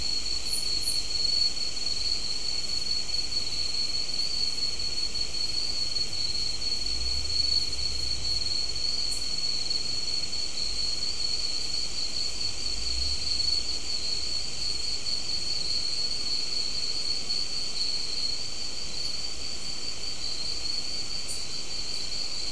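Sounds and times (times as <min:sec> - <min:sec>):
insect chorus with high-pitched ringing trill: 0:00.0 - 0:22.4.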